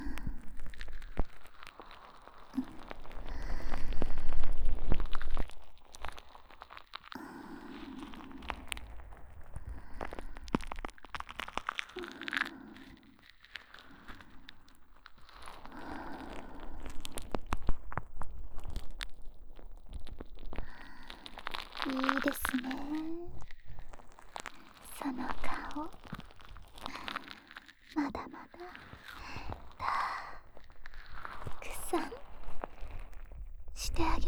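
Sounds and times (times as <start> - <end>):
licking deep in the ear: 0.0 - 34.2
person whispering by the ear: 21.8 - 23.5, 24.8 - 26.0, 27.9 - 30.5, 31.4 - 32.6, 33.8 - 34.2.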